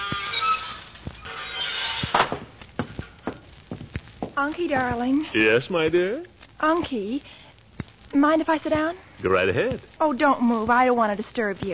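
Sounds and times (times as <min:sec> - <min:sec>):
porch swing squeaking: 0:00.0 - 0:02.2
porch swing wooden thunks and creaks: 0:01.0 - 0:04.4
speech: 0:04.4 - 0:07.4, 0:08.2 - 0:11.7.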